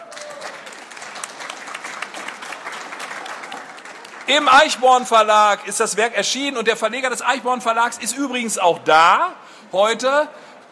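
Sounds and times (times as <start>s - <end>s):
audience applause at a book presentation: 0.0s - 4.8s
speech: 4.3s - 10.6s.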